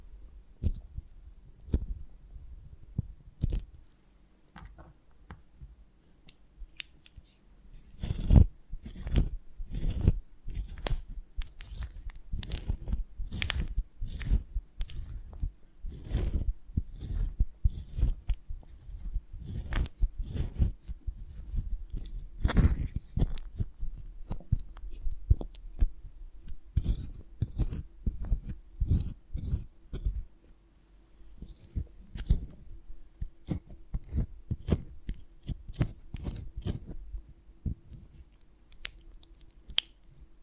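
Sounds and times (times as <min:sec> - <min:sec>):
faint low hum: 0:00.0 - 0:40.4
honeycomb on a branch crunching and snapping: 0:03.4 - 0:03.9, 0:06.7 - 0:30.2, 0:33.4 - 0:37.0, 0:38.2 - 0:40.2.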